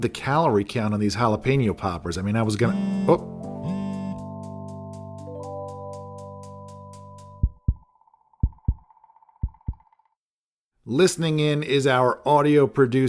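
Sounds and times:
speech: 0:00.0 - 0:03.3, 0:10.9 - 0:13.0
restaurant table pager buzzing: 0:02.7 - 0:04.2.

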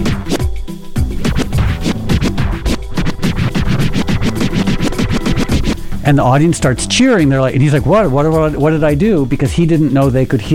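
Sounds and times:
DJ record scratching: 0:00.0 - 0:00.4, 0:01.0 - 0:06.8
bass-heavy beat: 0:00.0 - 0:10.5
speech: 0:06.1 - 0:10.5.

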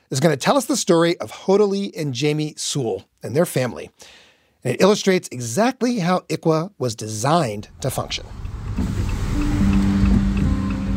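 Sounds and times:
speech: 0:00.1 - 0:08.4
car road noise driving along the Will Rogers Turnpike through Claremore Oklahoma: 0:07.6 - 0:10.9
low even car engine hum: 0:07.7 - 0:10.9.

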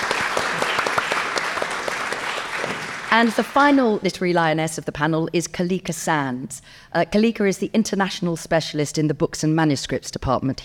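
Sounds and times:
crowd applause: 0:00.0 - 0:04.0
speech: 0:03.1 - 0:10.6.

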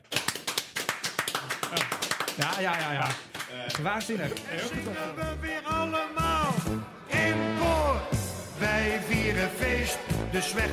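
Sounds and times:
few people clapping: 0:00.0 - 0:05.0
speech: 0:01.7 - 0:10.7.

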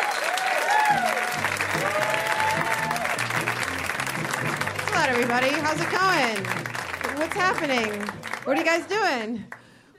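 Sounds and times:
audience applauding a comedian: 0:00.0 - 0:09.6
speech: 0:05.1 - 0:06.6, 0:07.2 - 0:09.6.

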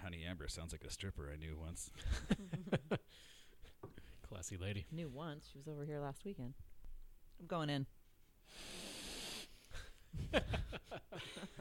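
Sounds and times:
speech: 0:00.0 - 0:06.7, 0:07.4 - 0:08.9, 0:10.1 - 0:11.6
aggressive sniff of whiskey: 0:08.4 - 0:10.0.

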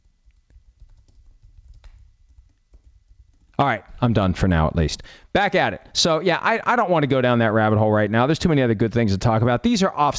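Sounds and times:
fingers typing on a computer keyboard: 0:00.2 - 0:03.6
speech: 0:03.6 - 0:10.1.

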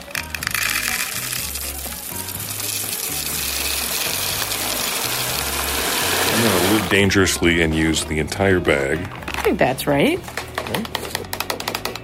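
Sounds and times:
roasted sunflower seeds being poured: 0:00.2 - 0:07.2
speech: 0:06.9 - 0:10.9.

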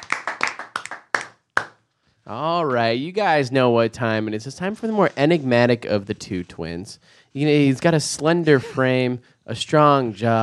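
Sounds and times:
hands clapping: 0:00.0 - 0:02.0
speech: 0:02.3 - 0:10.4.

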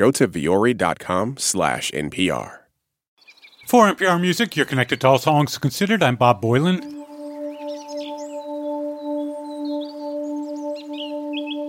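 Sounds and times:
speech: 0:00.0 - 0:02.6, 0:03.7 - 0:07.0
birds singing: 0:03.2 - 0:05.5, 0:06.8 - 0:11.6.

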